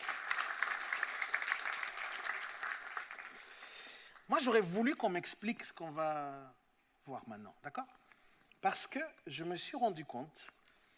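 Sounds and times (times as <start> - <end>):
audience clapping: 0.0 - 4.4
speech: 4.3 - 8.0, 8.6 - 10.6.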